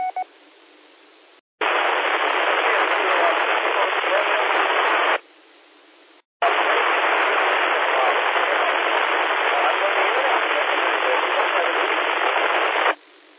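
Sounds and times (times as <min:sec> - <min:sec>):
white noise: 0:00.2 - 0:13.3
weak radio station buried in white noise: 0:01.6 - 0:05.4, 0:06.4 - 0:13.3.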